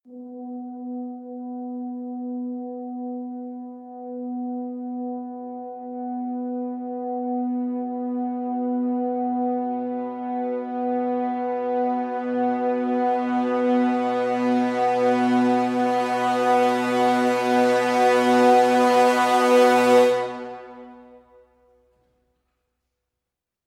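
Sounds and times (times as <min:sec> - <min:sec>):
crescendo brass swell on high B: 0:06.6 - 0:21.6.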